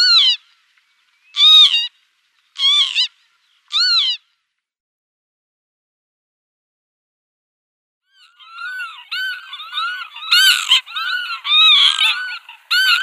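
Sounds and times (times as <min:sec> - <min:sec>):
northern lapwing flock calls: 0:00.0 - 0:00.6, 0:01.3 - 0:01.9, 0:02.6 - 0:04.2, 0:08.1 - 0:13.0.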